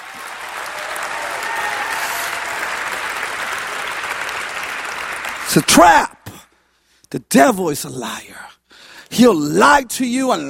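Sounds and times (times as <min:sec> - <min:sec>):
audience clapping and applauding: 0:00.0 - 0:06.0
speech: 0:05.5 - 0:06.1, 0:07.1 - 0:10.4.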